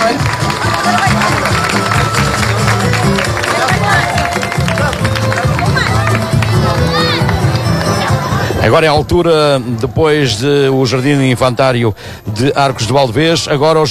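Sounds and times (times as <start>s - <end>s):
crowd applause: 0.0s - 8.6s
speech: 8.7s - 13.8s.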